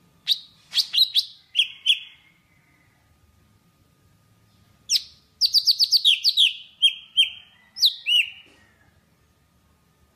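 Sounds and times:
Java sparrow singing: 0:00.2 - 0:02.2, 0:04.9 - 0:08.4.

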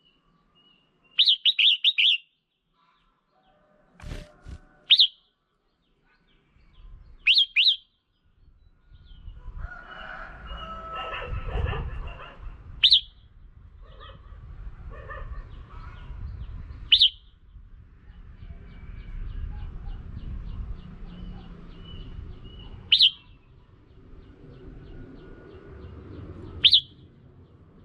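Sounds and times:
red-whiskered bulbul chirping: 0:00.0 - 0:03.2, 0:04.4 - 0:09.4, 0:12.8 - 0:13.3, 0:15.7 - 0:17.5, 0:18.5 - 0:27.8.

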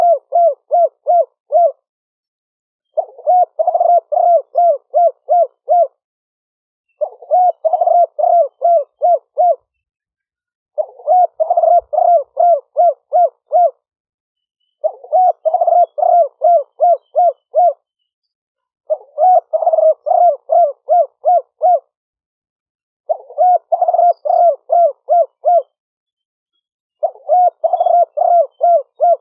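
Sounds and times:
spotted dove cooing: 0:00.0 - 0:01.8, 0:03.0 - 0:06.0, 0:07.0 - 0:09.7, 0:10.8 - 0:13.8, 0:14.8 - 0:17.9, 0:18.9 - 0:22.0, 0:23.1 - 0:25.8, 0:27.0 - 0:29.2.

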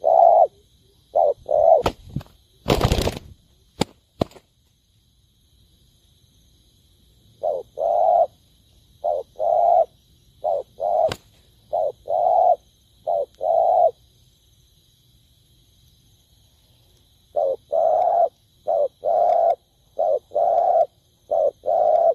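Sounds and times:
spotted dove cooing: 0:00.0 - 0:02.0, 0:07.4 - 0:08.4, 0:09.0 - 0:14.0, 0:17.3 - 0:22.1
sharp cracks: 0:01.8 - 0:04.5, 0:11.0 - 0:11.4.

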